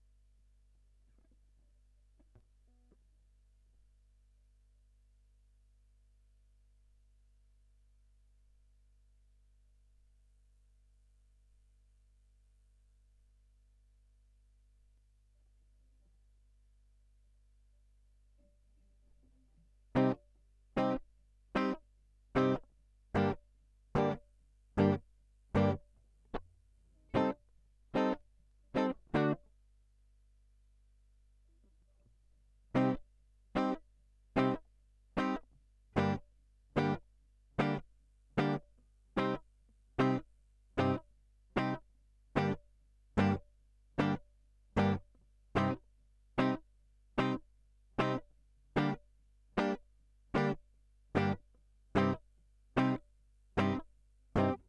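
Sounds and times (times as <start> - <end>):
guitar line: 20.0 - 20.2, 20.8 - 21.0, 21.6 - 21.8, 22.4 - 22.6, 23.2 - 23.4, 24.0 - 24.2, 24.8 - 25.0, 25.6 - 25.8, 27.1 - 27.4, 28.0 - 28.2, 28.8 - 29.4, 32.8 - 33.0, 33.6 - 33.8, 34.4 - 34.6, 35.2 - 35.4, 36.0 - 36.2, 36.8 - 37.0, 37.6 - 37.8, 38.4 - 38.6, 39.2 - 39.4, 40.0 - 40.2, 40.8 - 41.0, 41.6 - 41.8, 42.4 - 42.6, 43.2 - 43.4, 44.0 - 44.2, 44.8 - 45.0, 45.6 - 45.8, 47.2 - 47.4, 48.0 - 48.2, 48.8 - 49.0, 50.4 - 50.6, 51.2 - 51.4, 52.0 - 52.2, 52.8 - 53.0, 53.6 - 53.8, 54.4 - 54.6.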